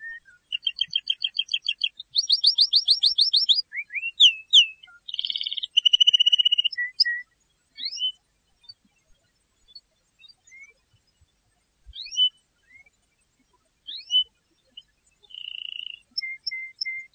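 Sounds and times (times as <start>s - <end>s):
canary singing: 0.0s - 8.2s, 12.0s - 12.4s, 13.9s - 17.1s.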